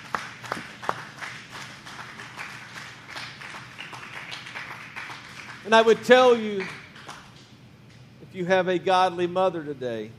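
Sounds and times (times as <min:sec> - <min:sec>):
audience hand clapping: 0:00.0 - 0:07.5
speech: 0:05.7 - 0:06.8, 0:08.4 - 0:10.1.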